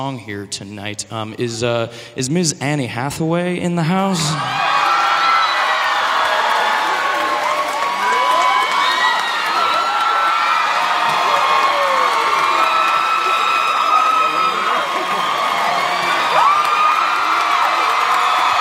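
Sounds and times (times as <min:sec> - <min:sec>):
speech: 0:00.0 - 0:04.8
concert audience of about 1,800 people cheering and screaming: 0:04.2 - 0:18.5
concert audience clapping: 0:05.8 - 0:18.5.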